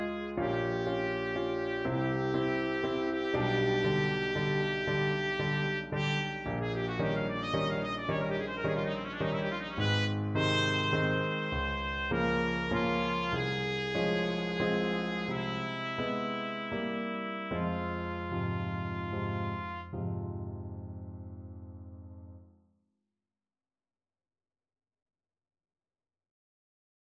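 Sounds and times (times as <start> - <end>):
trumpet playing a classical ballade: 0.0 - 20.3.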